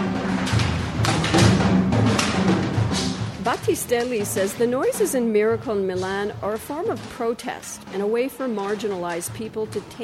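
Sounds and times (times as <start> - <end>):
improvised shelter being slapped together: 0.4 - 3.2
speech: 3.6 - 10.0.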